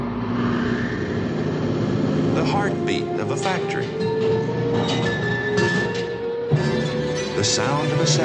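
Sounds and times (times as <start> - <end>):
turbine humming: 0.0 - 8.2
speech: 2.7 - 5.8, 7.4 - 8.2.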